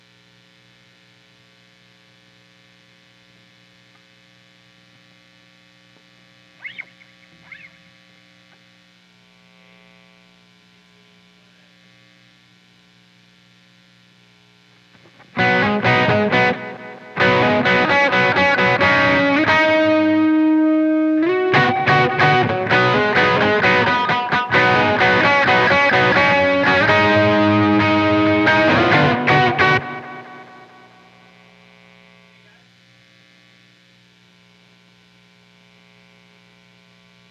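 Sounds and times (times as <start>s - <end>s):
guitar: 6.6s - 7.9s, 14.9s - 31.3s.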